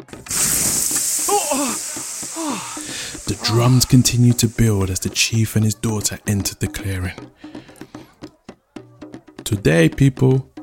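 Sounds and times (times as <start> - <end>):
speech: 0.0 - 0.6, 1.3 - 7.7, 9.5 - 10.5
water hissing as it douses fire: 0.0 - 5.2.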